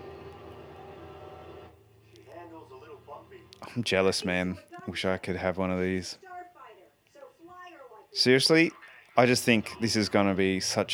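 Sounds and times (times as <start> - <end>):
hot rod-like spaceship engine rattling: 0.0 - 3.6
speech: 2.6 - 6.2, 8.2 - 10.9.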